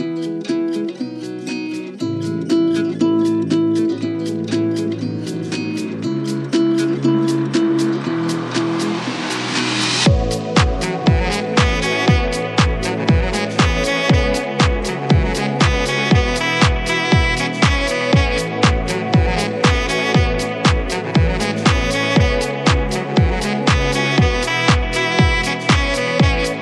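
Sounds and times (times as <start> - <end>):
sweet saxophone: 0.2 - 26.5
electro dance music: 3.2 - 26.5.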